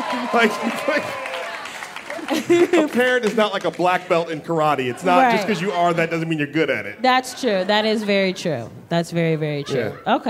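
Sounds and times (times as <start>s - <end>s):
laughter: 0.0s - 1.2s, 2.0s - 8.6s
audience clapping: 0.0s - 4.8s
speech: 0.1s - 1.4s, 2.2s - 10.2s.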